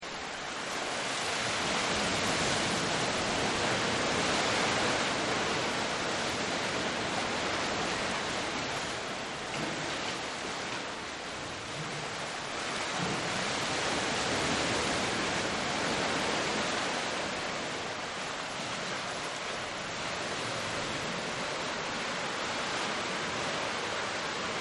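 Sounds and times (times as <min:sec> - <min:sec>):
surf rushing into a cave: 0:00.2 - 0:24.5.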